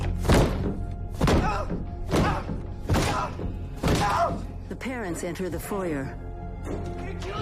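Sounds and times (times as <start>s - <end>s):
foot kicking a wooden attic door: 0.2s - 4.3s
speech: 4.8s - 7.3s.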